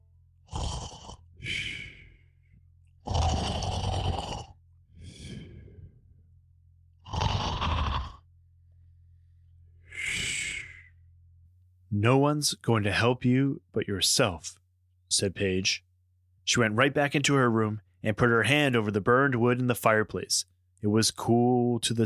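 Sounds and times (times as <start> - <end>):
guard snoring: 0.4 - 2.2, 3.0 - 6.0, 7.0 - 8.3, 9.9 - 11.0
speech: 12.0 - 15.9, 16.5 - 22.0.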